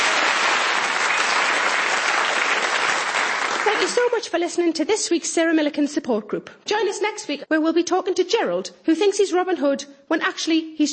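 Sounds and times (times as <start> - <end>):
audience applause: 0.0 - 4.1
speech: 3.7 - 10.9.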